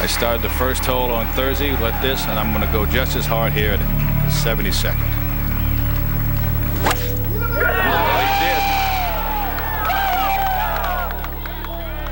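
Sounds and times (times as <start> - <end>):
speech: 0.0 - 5.2
golf crowd cheering and applauding: 0.0 - 12.0
sharp crack: 5.8 - 7.4
whoops and whistles: 6.8 - 12.0.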